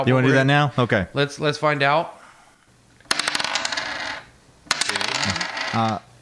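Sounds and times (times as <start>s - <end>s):
speech: 0.0s - 2.2s, 5.7s - 6.0s
dice rolling: 3.0s - 6.0s.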